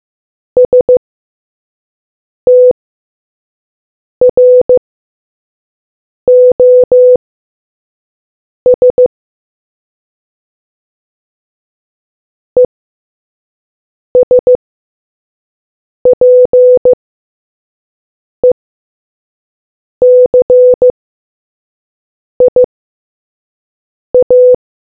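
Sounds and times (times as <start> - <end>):
morse code beeps: 0.6 - 1.0, 2.5 - 2.8, 4.3 - 4.8, 6.3 - 7.2, 8.7 - 9.1, 14.2 - 14.6, 16.2 - 17.0, 20.0 - 20.9, 22.4 - 22.7, 24.2 - 24.6.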